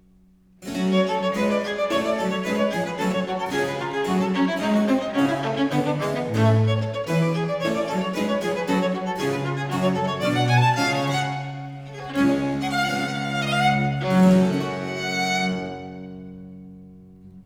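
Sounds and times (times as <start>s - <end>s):
violin suite movement in G minor: 0.6s - 17.4s.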